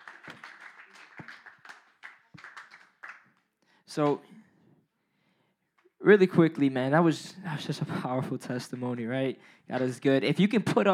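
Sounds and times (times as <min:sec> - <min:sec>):
audience clapping: 0:00.0 - 0:04.2, 0:08.5 - 0:09.1
speech: 0:04.0 - 0:04.4, 0:06.1 - 0:10.9.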